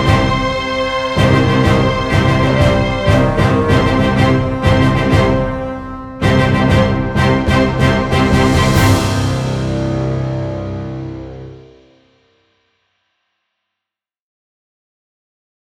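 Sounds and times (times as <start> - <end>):
stock music: 0.0 - 12.0.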